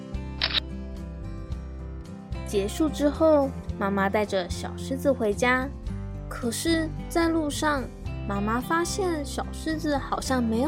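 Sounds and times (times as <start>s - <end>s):
camera shutter click: 0.4s - 0.6s
speech: 2.5s - 10.6s.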